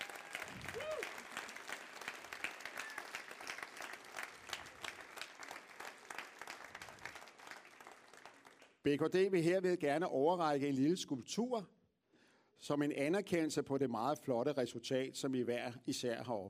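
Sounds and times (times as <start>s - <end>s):
crowd applauding: 0.0s - 8.8s
speech: 8.8s - 11.8s, 12.6s - 16.4s.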